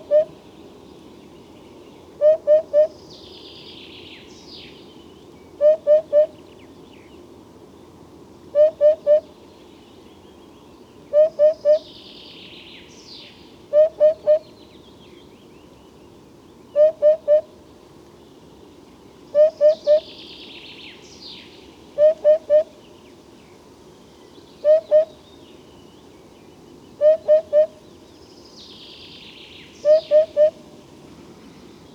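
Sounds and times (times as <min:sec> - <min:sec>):
crested hoopoe calling: 0:00.0 - 0:00.4, 0:02.2 - 0:03.0, 0:05.6 - 0:06.3, 0:08.6 - 0:09.3, 0:11.1 - 0:11.8, 0:13.7 - 0:14.5, 0:16.8 - 0:17.5, 0:19.3 - 0:20.1, 0:22.0 - 0:22.8, 0:24.6 - 0:25.2, 0:27.0 - 0:27.8, 0:29.8 - 0:30.8.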